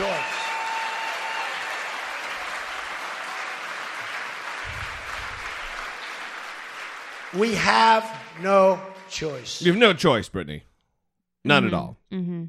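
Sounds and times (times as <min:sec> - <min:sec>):
large rally crowd applauding and cheering: 0:00.0 - 0:09.1
speech: 0:07.3 - 0:10.7, 0:11.4 - 0:12.4.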